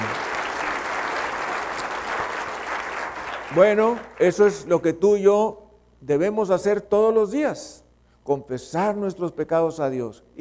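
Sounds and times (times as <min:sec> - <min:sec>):
audience applauding: 0:00.0 - 0:04.6
speech: 0:03.5 - 0:10.3.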